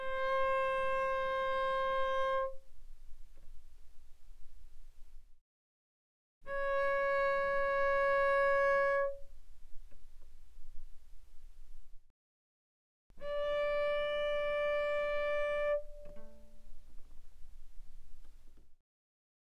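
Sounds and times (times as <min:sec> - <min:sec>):
cello bowed mezzo-forte on the D string D4 and D5: 0:00.0 - 0:03.5, 0:06.5 - 0:11.6, 0:13.2 - 0:18.6.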